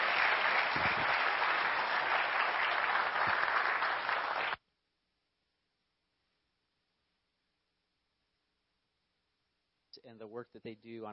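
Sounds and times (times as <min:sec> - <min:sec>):
audience applause: 0:00.0 - 0:04.6
speech: 0:10.1 - 0:11.1.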